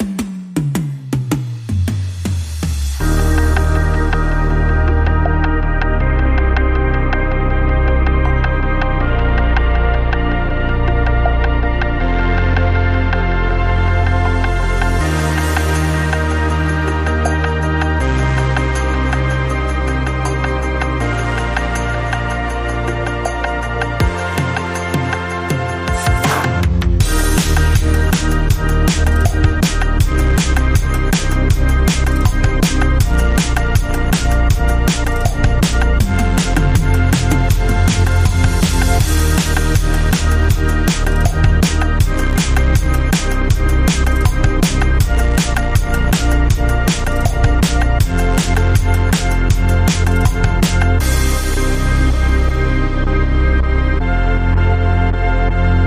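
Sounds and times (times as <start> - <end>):
rhythmic synths: 0.0 - 55.8.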